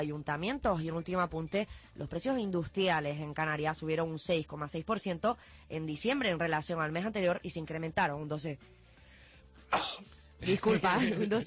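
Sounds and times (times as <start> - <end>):
speech: 0.0 - 8.9, 9.6 - 11.4
sneeze during a live regional news broadcast: 9.7 - 10.1
laughter: 10.4 - 11.4.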